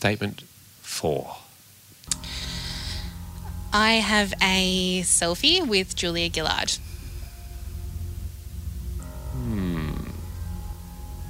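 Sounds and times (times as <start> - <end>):
speech: 0.0 - 1.4, 3.7 - 6.9
low hum: 0.0 - 11.2
rasping snore-like inhale: 2.2 - 3.2.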